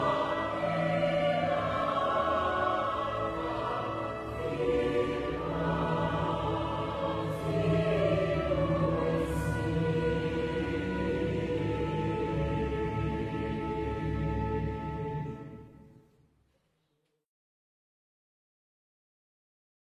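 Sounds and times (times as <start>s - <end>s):
national anthem: 0.0s - 15.9s.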